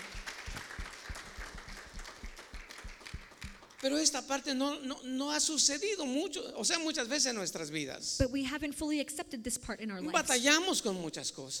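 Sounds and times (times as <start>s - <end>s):
audience applause: 0.0s - 4.1s
speech: 3.8s - 11.5s.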